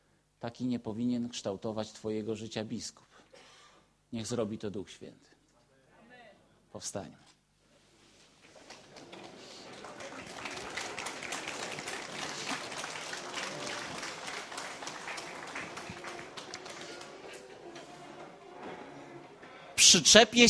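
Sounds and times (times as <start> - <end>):
speech: 0.4 - 3.2, 4.1 - 5.4, 6.8 - 7.4, 19.9 - 20.4
audience applause: 8.5 - 19.4.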